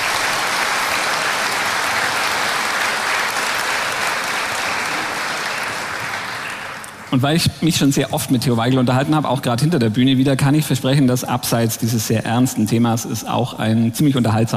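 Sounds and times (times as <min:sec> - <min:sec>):
large crowd audience applause: 0:00.0 - 0:07.2
speech: 0:07.1 - 0:14.5.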